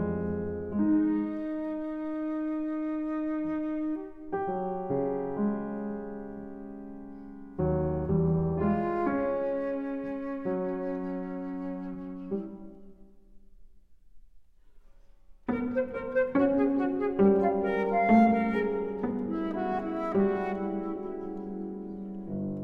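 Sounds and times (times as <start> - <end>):
flute miniatures: 0.2 - 5.5, 8.0 - 13.3, 15.5 - 22.6.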